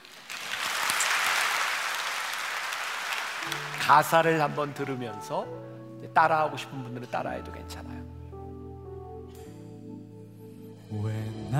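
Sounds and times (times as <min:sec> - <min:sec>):
audience applause: 0:00.0 - 0:04.8
speech: 0:03.5 - 0:08.0, 0:10.9 - 0:11.5.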